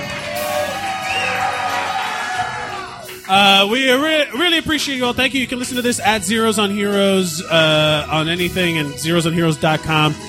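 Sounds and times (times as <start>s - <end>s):
audience applause: 0.0s - 3.7s
speech: 3.3s - 10.2s.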